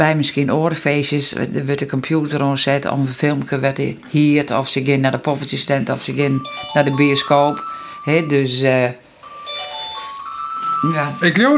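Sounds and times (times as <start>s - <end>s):
speech: 0.0s - 9.0s, 10.8s - 11.5s
telephone ringing: 6.2s - 11.5s.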